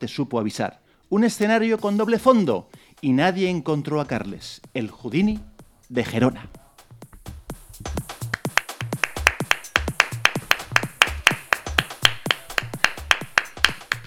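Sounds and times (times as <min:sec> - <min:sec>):
speech: 0:00.0 - 0:06.6
single audience member clapping: 0:08.1 - 0:14.0.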